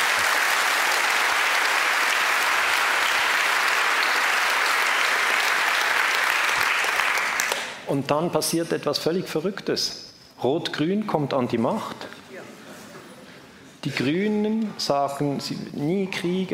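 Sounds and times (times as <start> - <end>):
audience applause: 0.0 - 7.7
speech: 7.9 - 12.2, 13.8 - 16.5.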